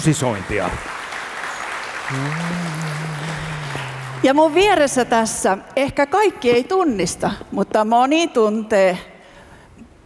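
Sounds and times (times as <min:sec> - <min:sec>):
speech: 0:00.0 - 0:01.0, 0:02.1 - 0:09.1
audience applause: 0:00.0 - 0:05.0.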